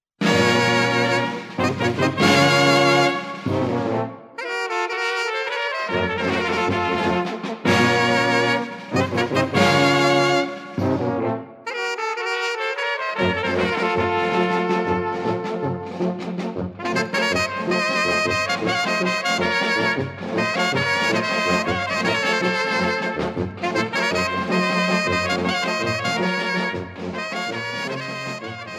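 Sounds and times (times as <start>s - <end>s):
Romani cocek music: 0.2s - 28.7s.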